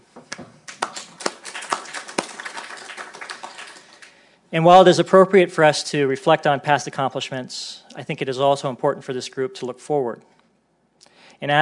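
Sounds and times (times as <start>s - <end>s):
speech: 0.2s - 0.5s, 4.5s - 10.4s, 11.4s - 11.6s
crowd applauding: 0.7s - 4.2s.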